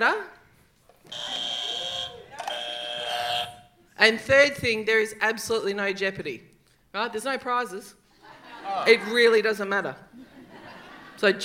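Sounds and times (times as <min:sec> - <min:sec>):
speech: 0:00.0 - 0:00.3, 0:04.0 - 0:08.0, 0:08.6 - 0:10.3, 0:11.2 - 0:11.4
game show buzzer: 0:01.1 - 0:03.8
laughter: 0:08.2 - 0:09.4, 0:10.1 - 0:11.4.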